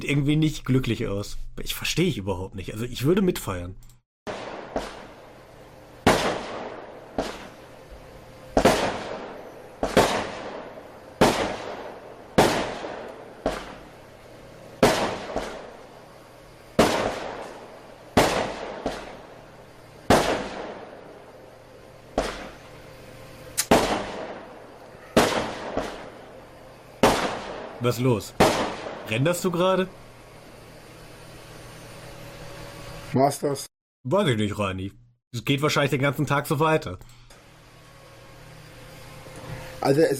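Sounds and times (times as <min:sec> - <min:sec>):
speech: 0:00.0 - 0:03.9, 0:27.9 - 0:30.0, 0:33.1 - 0:37.3, 0:39.8 - 0:40.1
fireworks exploding outside: 0:04.3 - 0:05.1, 0:06.0 - 0:07.6, 0:08.5 - 0:13.9, 0:14.8 - 0:15.8, 0:16.8 - 0:17.6, 0:18.2 - 0:19.2, 0:20.1 - 0:21.0, 0:25.2 - 0:26.2, 0:27.0 - 0:27.8.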